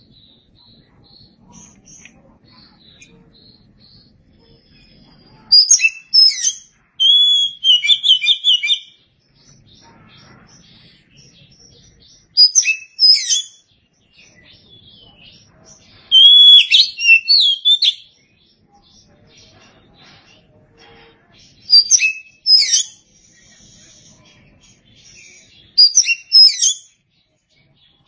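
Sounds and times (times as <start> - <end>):
Oriental magpie-robin song: 0.0 - 28.0.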